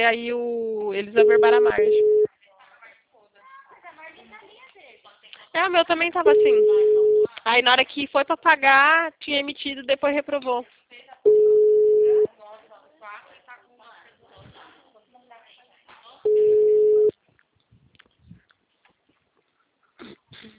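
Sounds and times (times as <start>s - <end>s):
speech: 0.0s - 2.2s, 5.5s - 11.4s
telephone ringing: 1.2s - 2.3s, 6.2s - 7.3s, 11.3s - 12.3s, 16.3s - 17.1s.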